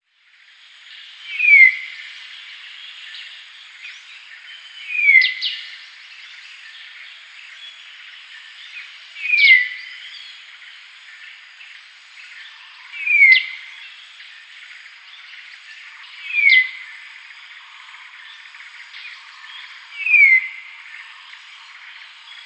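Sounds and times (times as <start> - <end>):
dark-throated oriole down-slurred whistled calls: 1.2 - 7.2, 8.4 - 10.5, 12.3 - 14.6, 15.4 - 22.4.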